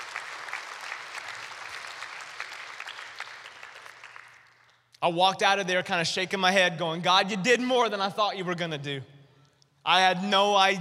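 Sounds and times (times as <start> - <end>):
audience clapping: 0.0 - 4.8
speech: 5.0 - 9.1, 9.8 - 10.8.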